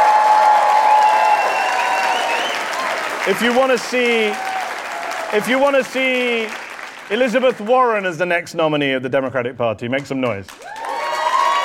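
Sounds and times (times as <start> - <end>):
live show audience applauding and cheering: 0.0 - 8.1, 10.5 - 11.6
speech: 3.3 - 4.5, 5.3 - 10.7.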